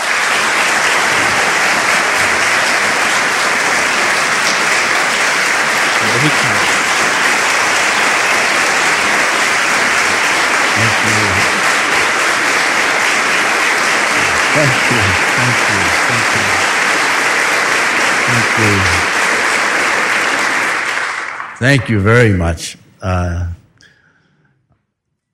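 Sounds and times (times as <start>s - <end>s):
audience standing ovation applause at the start of a talk: 0.0s - 22.3s
laughter: 5.9s - 13.1s, 14.0s - 16.9s, 18.2s - 19.2s
speech: 21.6s - 23.4s.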